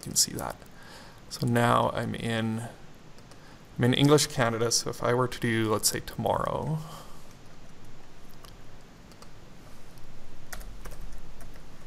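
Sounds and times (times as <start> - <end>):
speech: 0.1 - 2.8, 3.8 - 7.0
typing on a computer keyboard: 10.5 - 11.6.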